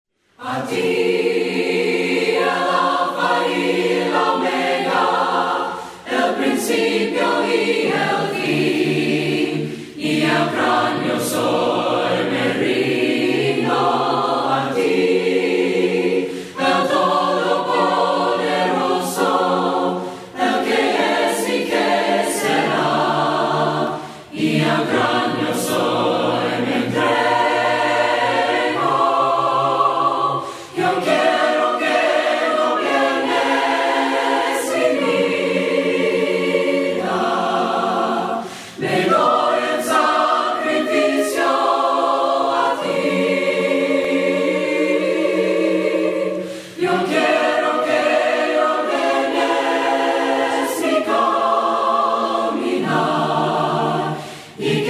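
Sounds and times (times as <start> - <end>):
voices singing hymns a cappella: 0.2 - 54.8.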